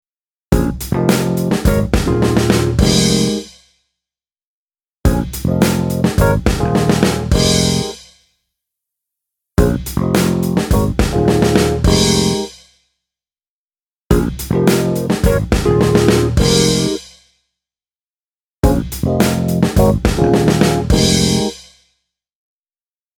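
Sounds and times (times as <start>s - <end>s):
Rhodes electric piano: 0.6s - 3.4s, 5.1s - 8.0s, 9.6s - 12.5s, 14.1s - 17.0s, 18.7s - 21.5s.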